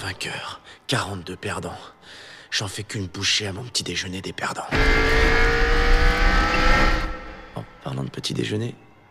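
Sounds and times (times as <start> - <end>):
speech: 0.2 - 5.6, 6.6 - 8.8
race car engine revving in a racing video game: 4.8 - 7.7.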